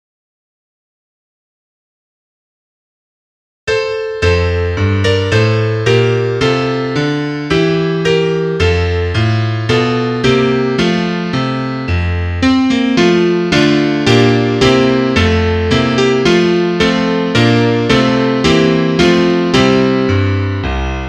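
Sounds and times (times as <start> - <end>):
piano: 3.7 - 21.0.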